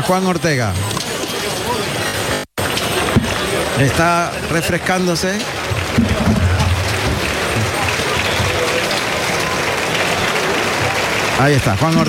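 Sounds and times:
speech: 0.0s - 1.0s, 3.8s - 6.4s, 11.4s - 12.0s
low murmur of voices: 0.0s - 12.0s
bullring crowd ovation applause: 2.6s - 12.0s.

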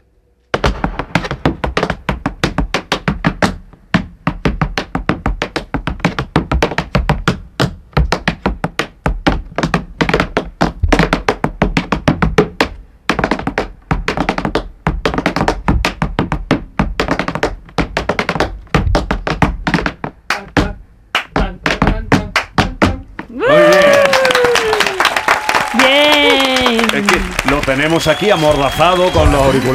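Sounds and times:
tap dance steps: 0.5s - 29.7s
people cheering: 23.3s - 29.7s
applause: 23.5s - 29.7s
speech: 28.0s - 29.7s.

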